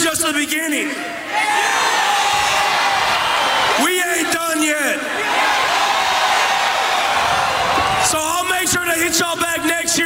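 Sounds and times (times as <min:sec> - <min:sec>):
speech: 0:00.2 - 0:01.8, 0:08.1 - 0:10.0
parade crowd cheering: 0:01.2 - 0:08.8.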